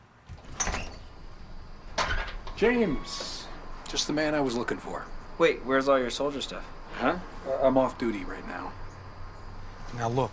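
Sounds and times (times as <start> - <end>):
door being opened: 0.2 - 3.6
speech: 2.6 - 3.3, 3.9 - 8.8, 9.9 - 10.3.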